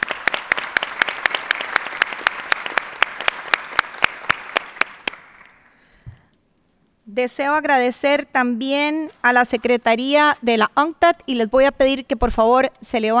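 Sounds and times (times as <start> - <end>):
roomful of people applauding: 0.0 - 5.4
speech: 7.2 - 13.1.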